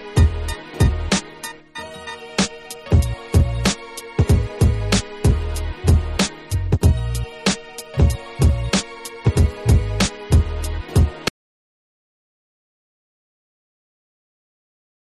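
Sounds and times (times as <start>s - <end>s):
instrumental music: 0.0s - 11.3s.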